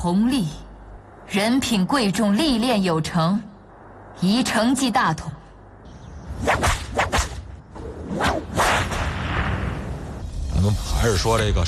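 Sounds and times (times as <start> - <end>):
speech: 0.0 - 0.6, 1.3 - 3.5, 4.2 - 5.4, 10.7 - 11.6
ceremonial whip cracks: 6.4 - 7.5, 8.1 - 9.2.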